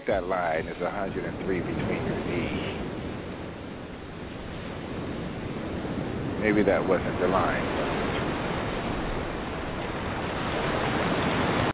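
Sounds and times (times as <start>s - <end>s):
ocean waves: 0.0s - 11.7s
speech: 0.1s - 2.7s, 6.4s - 8.0s.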